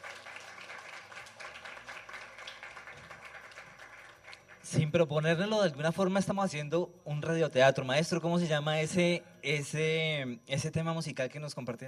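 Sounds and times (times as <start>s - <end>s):
audience applause: 0.0s - 4.6s
speech: 4.7s - 11.8s.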